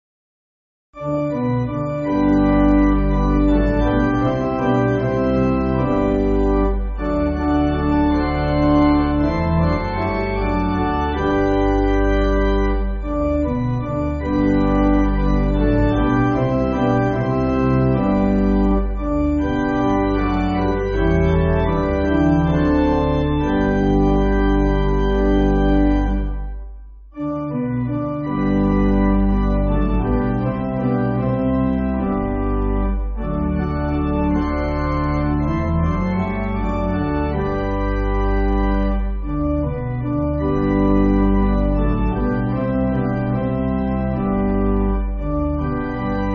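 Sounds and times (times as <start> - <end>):
pipe organ backing music for churches: 1.0 - 46.3.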